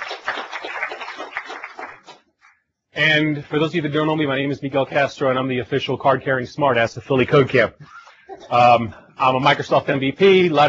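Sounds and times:
crowd applauding for sponsors: 0:00.0 - 0:02.3
speech: 0:03.0 - 0:10.6.

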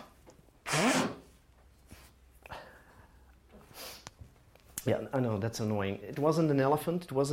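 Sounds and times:
person blowing nose: 0:00.6 - 0:01.4, 0:03.7 - 0:04.1
person sneezing: 0:00.6 - 0:01.4
speech: 0:04.8 - 0:07.3.

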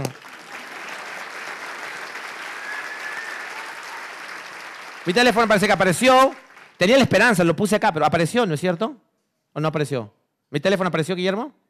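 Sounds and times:
audience applause for volunteers: 0:00.0 - 0:07.5
speech: 0:05.0 - 0:11.6.

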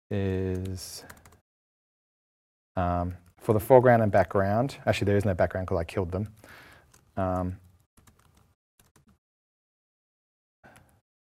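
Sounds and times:
speech: 0:00.1 - 0:01.2, 0:02.8 - 0:06.6, 0:07.2 - 0:07.6
slow typing on a computer keyboard: 0:00.5 - 0:01.4, 0:06.8 - 0:09.2.

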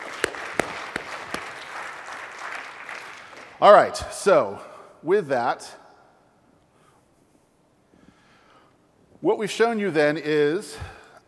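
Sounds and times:
small golf clap from audience: 0:00.1 - 0:01.6
speech: 0:03.6 - 0:05.8, 0:09.2 - 0:11.0.

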